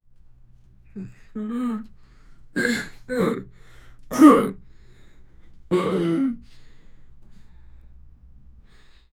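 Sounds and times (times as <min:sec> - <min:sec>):
adult man wincing in pain: 0:01.0 - 0:01.9, 0:02.6 - 0:03.5, 0:04.1 - 0:04.6, 0:05.7 - 0:06.4.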